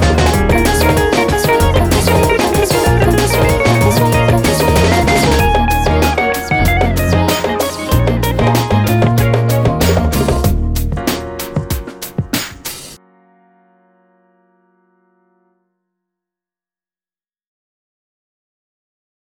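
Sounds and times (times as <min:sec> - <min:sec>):
jazzy hip-hop remix: 0:00.0 - 0:13.0.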